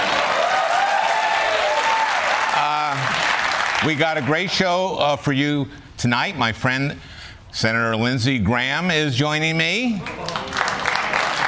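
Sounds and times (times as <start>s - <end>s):
audience applause: 0.0s - 4.4s, 10.0s - 11.4s
speech: 3.8s - 10.3s.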